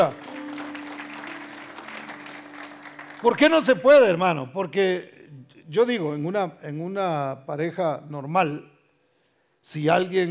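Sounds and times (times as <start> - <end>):
speech: 0.0 - 0.2, 3.2 - 8.7, 9.6 - 10.2
audience applause: 0.0 - 3.8.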